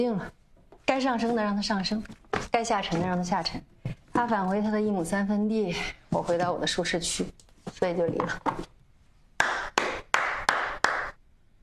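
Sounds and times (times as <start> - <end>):
speech: 0.0 - 8.7
person clapping hands: 9.4 - 11.2.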